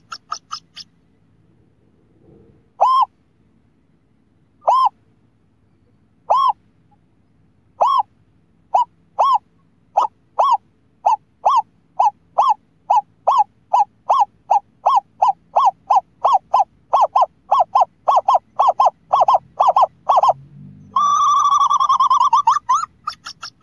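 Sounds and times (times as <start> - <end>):
scops owl hooting: 0.0 - 0.9, 2.8 - 3.2, 4.6 - 5.0, 6.2 - 6.6, 7.8 - 8.1, 8.7 - 23.6.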